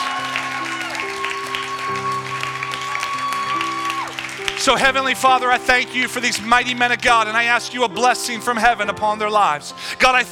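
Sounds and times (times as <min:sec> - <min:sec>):
women cheering and clapping: 0:00.0 - 0:04.9
sustained keyboard chords: 0:00.0 - 0:10.3
speech: 0:04.6 - 0:10.3.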